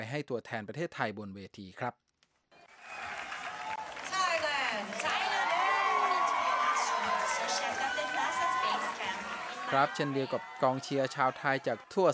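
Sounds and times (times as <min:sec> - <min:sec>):
speech: 0:00.0 - 0:02.1, 0:09.7 - 0:12.1
crowd cheering: 0:02.5 - 0:12.1.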